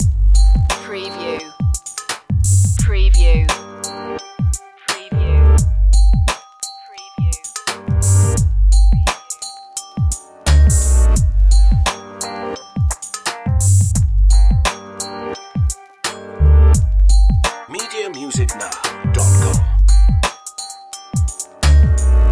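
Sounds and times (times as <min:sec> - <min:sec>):
music loop: 0:00.0 - 0:22.3.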